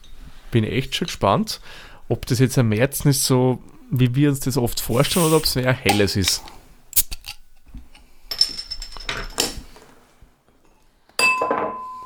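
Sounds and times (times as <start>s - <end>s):
speech: 0.5s - 6.5s
stemless wine glass clinking: 11.2s - 12.0s.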